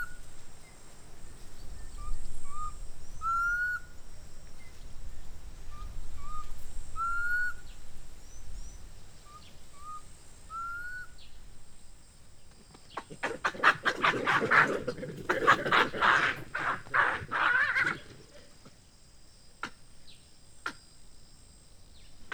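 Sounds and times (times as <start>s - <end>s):
bird repeating short rising whistles in Mmabolela Reserve, Limpopo, South Africa: 0.0s - 0.2s, 1.7s - 4.0s, 5.7s - 11.4s
steady high insect whine: 0.0s - 22.3s.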